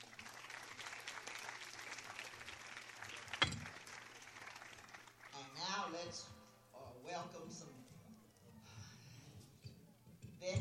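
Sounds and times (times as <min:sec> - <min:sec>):
folk music audience applause for a left-handed banjo picker: 0:00.0 - 0:05.4
speech: 0:05.9 - 0:06.4, 0:07.1 - 0:07.8.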